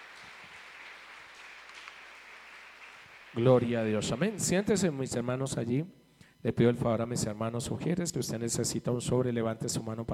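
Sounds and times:
audience applauding: 0:00.0 - 0:04.9
speech: 0:03.4 - 0:10.1.

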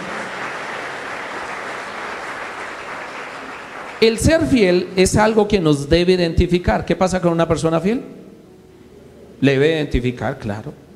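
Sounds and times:
audience applause: 0:00.0 - 0:04.2
speech: 0:04.0 - 0:08.2, 0:09.4 - 0:10.8.

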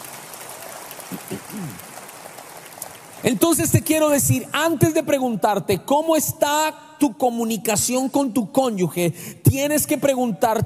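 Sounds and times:
audience applause: 0:00.0 - 0:03.5
speech: 0:01.1 - 0:01.9, 0:03.2 - 0:10.6
person's voice: 0:03.2 - 0:10.6.

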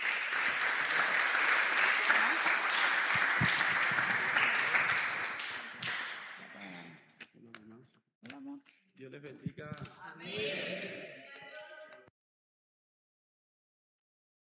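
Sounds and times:
audience applause: 0:00.0 - 0:06.5.

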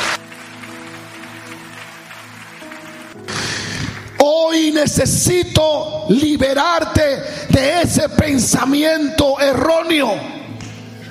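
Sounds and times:
audience applause: 0:00.0 - 0:04.2
speech: 0:04.8 - 0:10.4.

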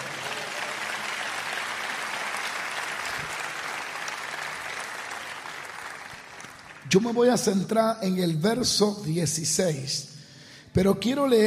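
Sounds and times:
audience applause: 0:00.0 - 0:06.9
speech: 0:06.9 - 0:10.1, 0:10.8 - 0:11.4.

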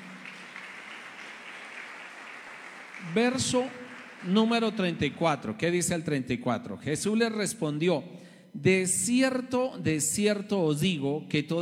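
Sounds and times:
audience applause: 0:00.0 - 0:04.8
speech: 0:03.0 - 0:11.5.

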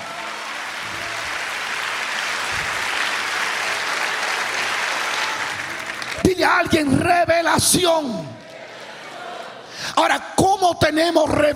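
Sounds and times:
loud audience applause: 0:00.0 - 0:07.0, 0:08.1 - 0:10.0
speech: 0:06.4 - 0:08.4, 0:09.8 - 0:11.5.

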